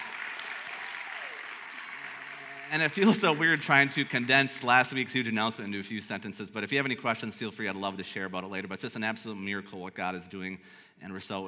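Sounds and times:
audience applauding: 0.0s - 5.1s
speech: 2.7s - 11.4s.

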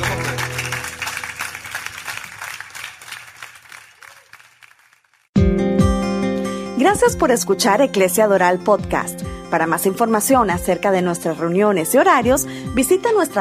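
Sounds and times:
music: 0.0s - 2.0s, 5.4s - 13.3s
loud audience applause: 0.0s - 5.3s
speech: 6.8s - 13.3s.

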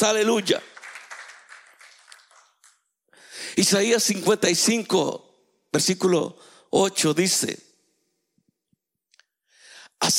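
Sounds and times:
speech: 0.0s - 0.7s, 3.6s - 7.7s
audience applause: 0.5s - 2.8s.

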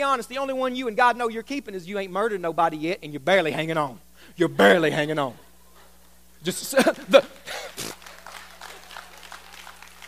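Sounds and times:
speech: 0.0s - 5.5s, 6.4s - 8.0s
audience clapping: 7.1s - 10.0s.

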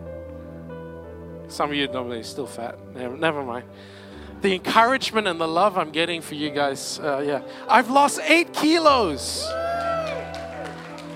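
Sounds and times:
speech: 1.5s - 9.6s
crowd cheering: 9.4s - 11.1s
clapping: 9.8s - 11.1s.

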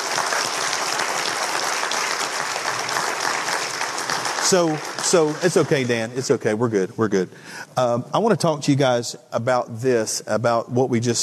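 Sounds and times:
audience applause: 0.0s - 6.3s
speech: 4.5s - 11.2s.

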